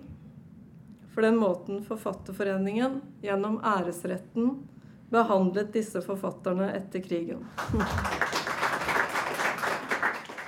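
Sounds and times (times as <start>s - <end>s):
speech: 1.2s - 8.4s
assembly applauding in Grand Hotell hall in Oslo: 7.6s - 10.4s.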